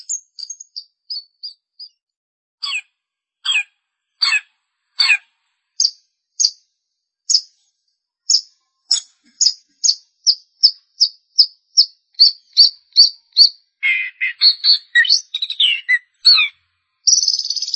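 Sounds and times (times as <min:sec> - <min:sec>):
long-tailed shrike calling: 0:12.6 - 0:16.5.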